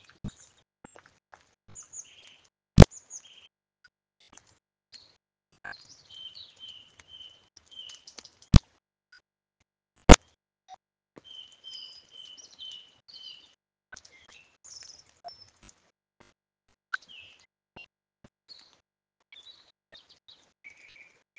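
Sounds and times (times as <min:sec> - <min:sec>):
birds: 0:00.0 - 0:03.5, 0:04.2 - 0:08.6, 0:11.2 - 0:15.8, 0:16.9 - 0:17.9, 0:18.5 - 0:21.3.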